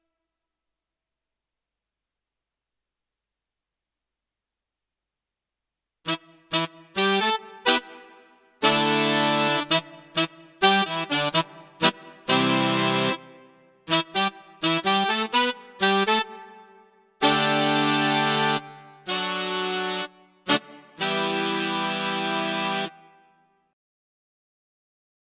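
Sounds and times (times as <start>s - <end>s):
Roland BK3 keyboard saxophone sound: 6.1s - 23.5s.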